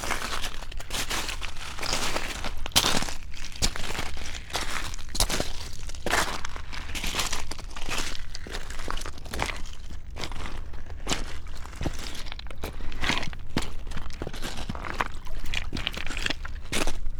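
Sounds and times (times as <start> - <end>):
footsteps on shore at Oxford Island, Lough Neagh: 0.0 - 17.0.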